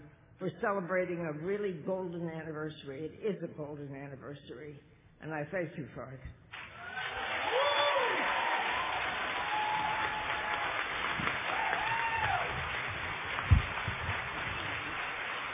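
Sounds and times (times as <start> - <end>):
speech: 0.4 - 6.4
audience applause: 6.6 - 15.5.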